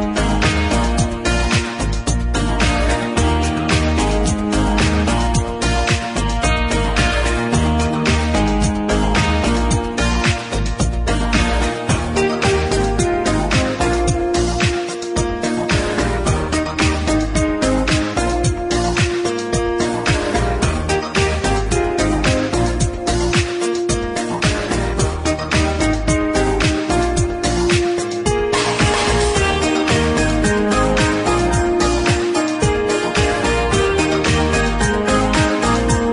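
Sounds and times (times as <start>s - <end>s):
forest party background music: 0.0s - 36.1s.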